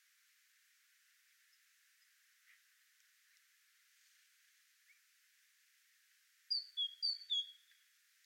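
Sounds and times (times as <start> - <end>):
faint steady hiss: 0.0 - 8.2
great tit whistling: 6.5 - 7.8.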